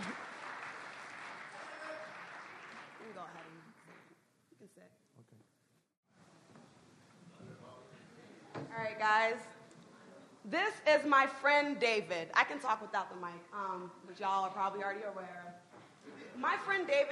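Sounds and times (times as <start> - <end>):
crowd clapping: 0.0 - 4.2
speech: 3.2 - 5.6, 8.6 - 9.6, 10.4 - 15.6, 16.4 - 17.0.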